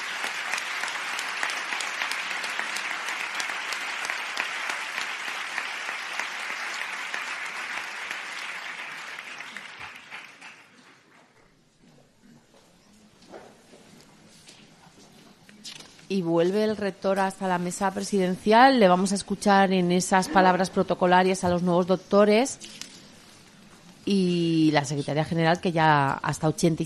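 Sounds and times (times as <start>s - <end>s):
crowd clapping: 0.0s - 11.1s
speech: 16.1s - 22.8s, 24.1s - 26.8s.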